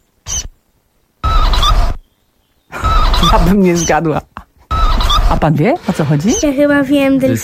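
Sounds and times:
mole call: 0:00.2 - 0:00.6, 0:01.2 - 0:04.1, 0:04.7 - 0:05.5, 0:06.2 - 0:06.6
speech: 0:03.2 - 0:04.3, 0:05.3 - 0:07.4.

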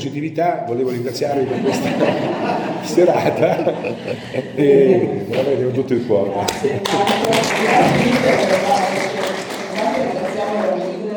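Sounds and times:
speech: 0:00.0 - 0:08.8
murmur of voices: 0:00.6 - 0:11.1
laughter: 0:00.9 - 0:10.4
audience applause: 0:06.5 - 0:11.1.

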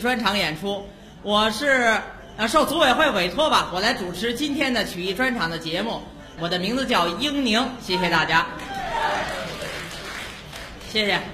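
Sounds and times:
speech: 0:00.0 - 0:09.4, 0:10.9 - 0:11.3
sparse audience applause: 0:08.6 - 0:10.9.

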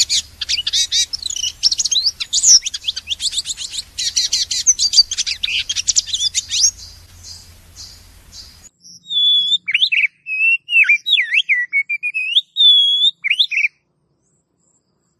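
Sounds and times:
low hum: 0:00.0 - 0:08.7
oriental magpie-robin song: 0:00.0 - 0:13.8.

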